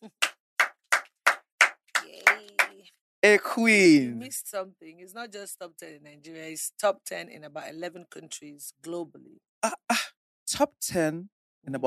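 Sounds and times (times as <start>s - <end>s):
hands clapping to welcome a talk show guest: 0.0s - 2.8s
speech: 3.2s - 11.8s.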